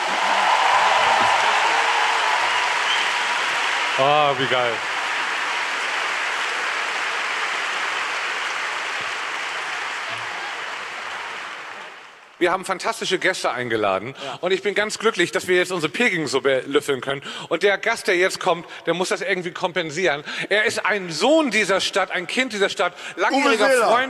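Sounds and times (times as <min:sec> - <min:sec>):
applause: 0:00.0 - 0:12.4
speech: 0:04.0 - 0:04.9, 0:12.4 - 0:24.0.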